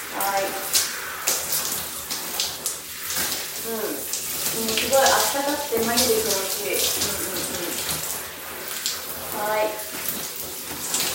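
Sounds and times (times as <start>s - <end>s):
running water rinsing shampoo out of hair: 0.0s - 11.1s
speech: 5.4s - 8.1s, 9.4s - 10.0s.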